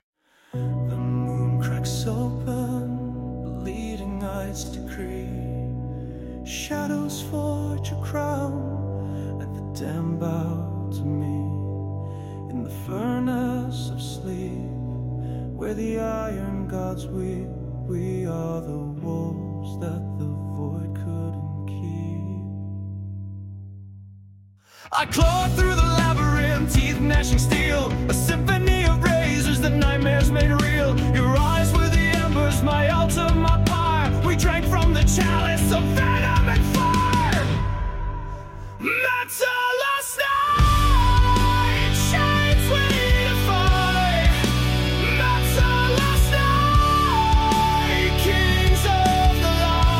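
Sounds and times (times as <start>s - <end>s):
metal ballad: 0.5s - 23.9s, 24.7s - 49.9s.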